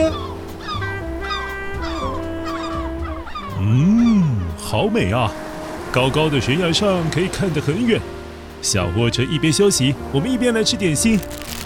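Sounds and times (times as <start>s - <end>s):
seagulls calling: 0.0s - 4.9s
speech: 4.7s - 5.4s, 6.0s - 11.6s.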